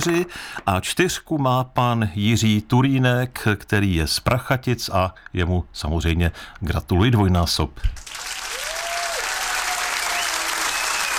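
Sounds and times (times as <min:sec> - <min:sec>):
speech: 0:00.0 - 0:08.3
audience applause: 0:08.0 - 0:11.1.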